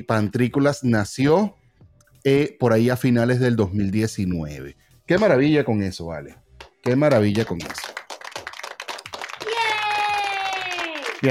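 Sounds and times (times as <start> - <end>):
speech: 0.0 - 1.6, 2.2 - 8.0
applause sound effect: 6.6 - 11.3.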